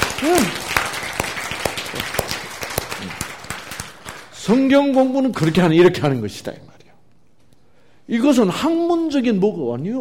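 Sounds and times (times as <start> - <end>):
audience applause: 0.0 - 4.3
speech: 0.2 - 0.6, 4.5 - 6.7, 8.1 - 9.9.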